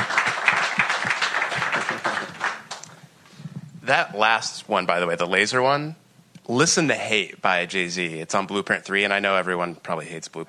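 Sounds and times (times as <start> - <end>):
audience applauding a contest winner: 0.0 - 2.9
speech: 3.9 - 10.4.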